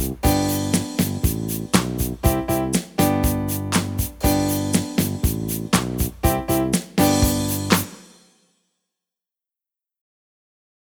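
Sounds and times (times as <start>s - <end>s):
instrumental music: 0.0s - 8.4s.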